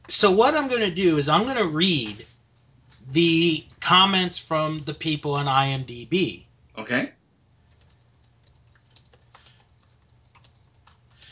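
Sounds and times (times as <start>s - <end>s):
low steady hum: 0.0s - 11.3s
speech: 0.1s - 2.3s, 3.1s - 7.2s
typing on a computer keyboard: 7.4s - 11.3s.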